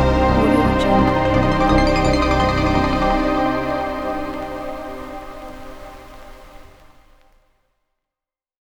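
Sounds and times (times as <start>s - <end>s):
VHS logo jingle: 0.2s - 5.7s.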